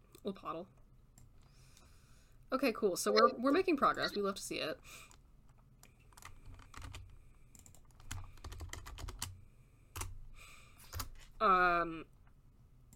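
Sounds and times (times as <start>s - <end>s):
speech: 0.2s - 0.8s, 2.5s - 5.2s, 11.4s - 12.1s
typing on a computer keyboard: 5.8s - 9.4s.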